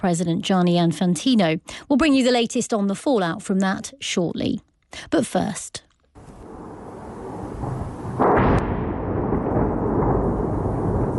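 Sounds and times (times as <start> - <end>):
speech: 0.0 - 5.8
explosion from Russian strikes on Kyiv: 6.4 - 11.1.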